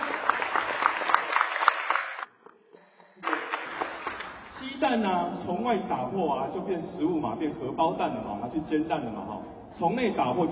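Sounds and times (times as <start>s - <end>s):
audience applause: 0.0s - 2.3s, 3.2s - 4.5s
speech: 4.8s - 10.5s.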